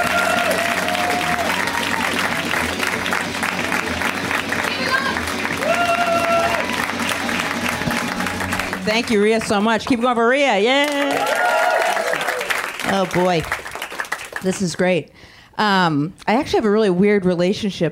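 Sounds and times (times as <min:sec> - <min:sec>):
audience whooping at a stand-up show: 0:00.0 - 0:08.8, 0:10.8 - 0:12.7
audience clapping for a comedian at a stand-up show: 0:00.0 - 0:14.7
speech: 0:08.9 - 0:11.4, 0:12.9 - 0:13.6, 0:14.4 - 0:17.9.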